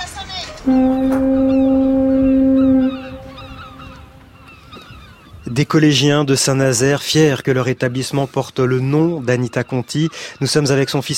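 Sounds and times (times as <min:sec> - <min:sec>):
speech: 0:00.6 - 0:01.4, 0:05.6 - 0:11.1
foghorns in a school bell: 0:00.6 - 0:04.4
seagull cries in a school bell: 0:00.7 - 0:05.5.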